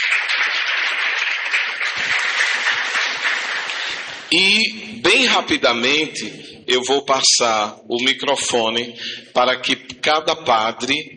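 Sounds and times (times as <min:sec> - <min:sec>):
audience applause: 0:00.0 - 0:04.3
speech: 0:04.3 - 0:11.1.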